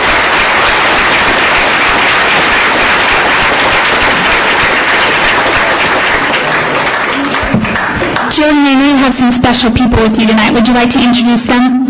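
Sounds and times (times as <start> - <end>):
audience applause: 0.0 - 8.6
speech: 9.5 - 11.7.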